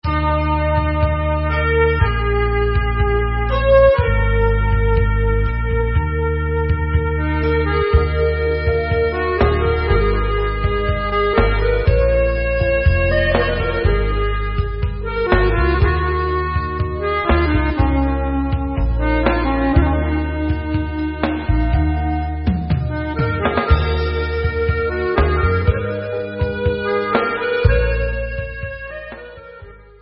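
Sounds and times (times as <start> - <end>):
instrumental Israeli dance music: 0.0 - 29.9.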